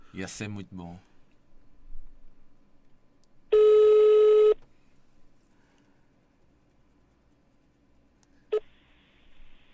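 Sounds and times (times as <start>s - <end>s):
faint hum: 0.0s - 9.7s
speech: 0.1s - 1.1s
telephone ringing during a prank call: 3.5s - 4.6s.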